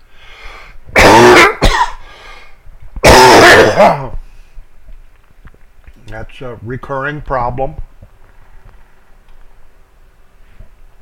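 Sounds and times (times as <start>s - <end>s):
coughing and throat clearing: 0.9s - 2.1s, 3.0s - 4.2s
speech: 3.8s - 4.1s, 6.2s - 7.9s.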